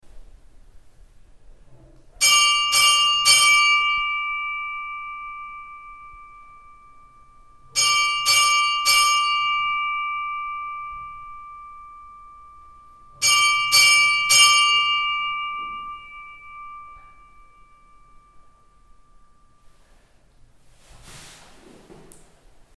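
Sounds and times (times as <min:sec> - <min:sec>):
church bells of Möðrudalur church: 0:02.2 - 0:19.9.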